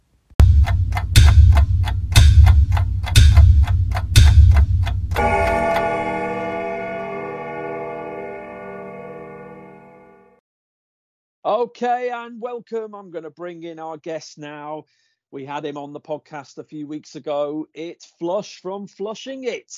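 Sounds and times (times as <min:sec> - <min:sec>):
deep thumps: 0:00.4 - 0:05.2
countdown clock ticks: 0:00.4 - 0:07.4
bright ringing chime: 0:05.2 - 0:10.3
speech: 0:11.6 - 0:19.7.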